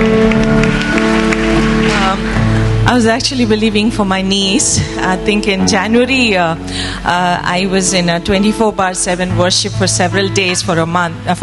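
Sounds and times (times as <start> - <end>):
audience applause: 0.0 - 2.8
speech: 3.0 - 11.4.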